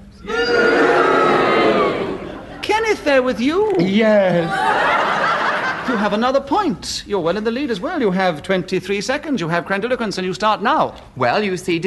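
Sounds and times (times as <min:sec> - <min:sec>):
studio audience cheering and booing: 0:00.2 - 0:02.5
laughter: 0:01.3 - 0:02.8, 0:03.8 - 0:06.2
speech: 0:03.0 - 0:04.9, 0:05.9 - 0:11.8.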